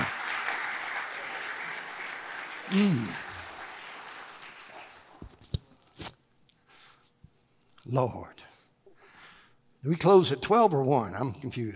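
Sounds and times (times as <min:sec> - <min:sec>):
audience clapping: 0:00.0 - 0:05.4
speech: 0:02.7 - 0:03.2, 0:07.9 - 0:08.5, 0:09.8 - 0:11.7.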